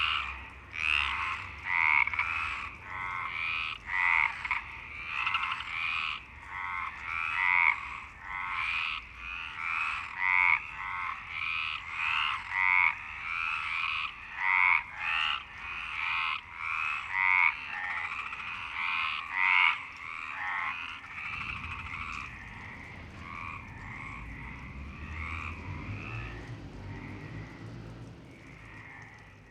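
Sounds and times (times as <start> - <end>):
frogs croaking: 0.0 - 29.4
low rumble: 21.1 - 28.6.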